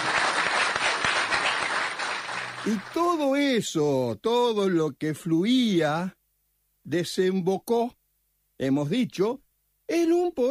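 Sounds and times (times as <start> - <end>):
audience applause: 0.0 - 3.1
speech: 2.6 - 6.2, 6.9 - 8.0, 8.6 - 10.4.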